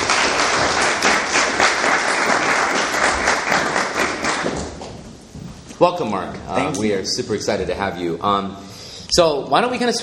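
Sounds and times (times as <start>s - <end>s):
audience applause: 0.0s - 4.9s
speech: 5.8s - 10.0s.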